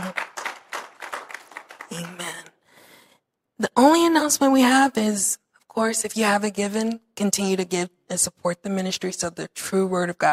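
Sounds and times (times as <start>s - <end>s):
audience clapping hands: 0.0s - 2.6s
speech: 3.8s - 10.3s.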